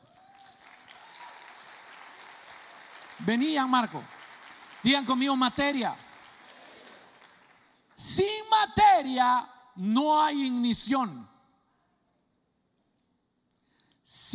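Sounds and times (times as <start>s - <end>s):
audience applause: 0.0s - 7.9s
speech: 3.2s - 4.1s, 4.8s - 6.0s, 8.0s - 11.3s, 14.1s - 14.3s.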